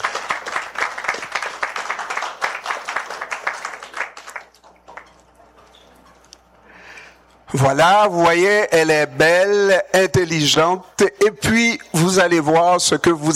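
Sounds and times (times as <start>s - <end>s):
audience clapping: 0.0s - 5.6s
speech: 7.5s - 13.3s.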